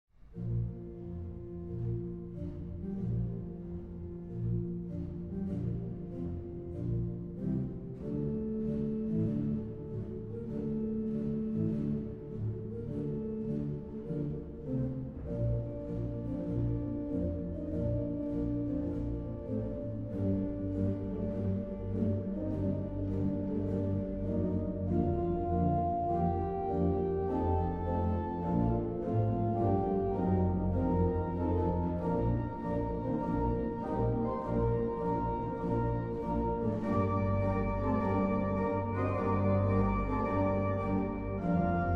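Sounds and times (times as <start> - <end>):
march on the main pipe organ: 0.3 - 41.9.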